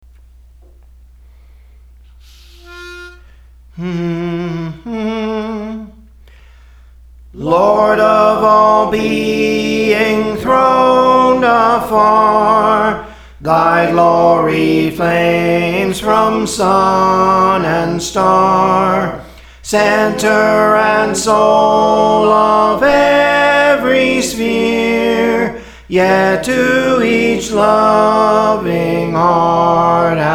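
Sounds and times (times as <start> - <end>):
soprano singing songs: 2.5 - 6.2, 7.4 - 30.3.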